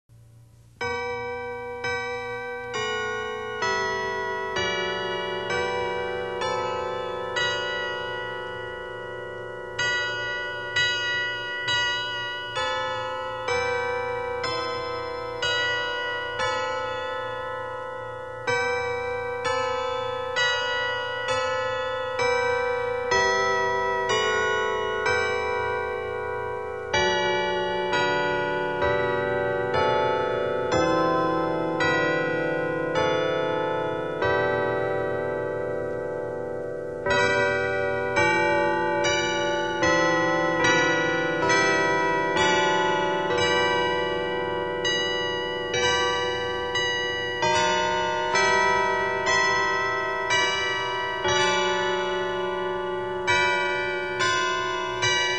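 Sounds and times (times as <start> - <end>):
carillon chimes: 0.8 - 55.3.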